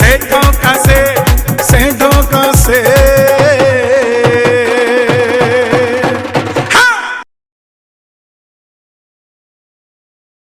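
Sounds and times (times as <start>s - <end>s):
Bhangra music: 0.0s - 7.3s.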